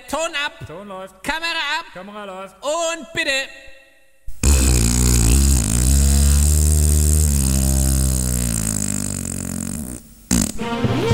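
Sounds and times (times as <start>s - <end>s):
speech: 0.3s - 3.7s, 10.6s - 10.9s
raspy noise: 4.3s - 10.7s
long fart: 4.3s - 11.0s.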